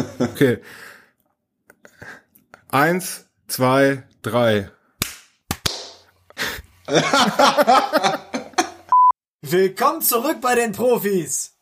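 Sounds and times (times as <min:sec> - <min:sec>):
laughter: 0:00.0 - 0:00.6, 0:06.9 - 0:08.9
speech: 0:00.2 - 0:00.9, 0:02.0 - 0:04.8, 0:06.9 - 0:08.2, 0:09.4 - 0:11.5
people clapping hands in front of the microphone: 0:05.0 - 0:06.0.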